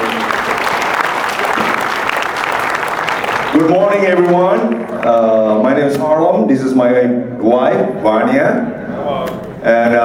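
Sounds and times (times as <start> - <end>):
audience applause welcoming a couple to the stage: 0.0 - 5.3
speech: 3.6 - 8.7, 9.6 - 10.0.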